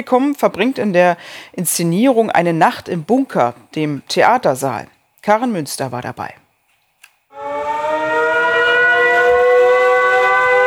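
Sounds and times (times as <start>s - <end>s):
speech: 0.0s - 6.4s
bomb alarm siren: 7.3s - 10.6s.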